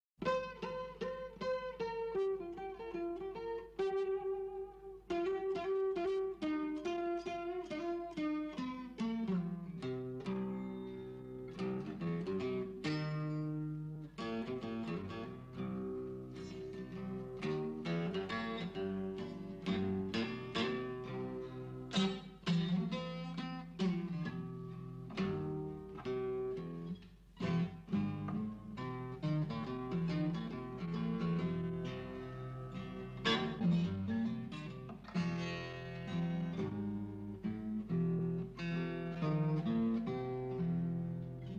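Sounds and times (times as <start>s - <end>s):
acoustic music: 0.1s - 41.5s.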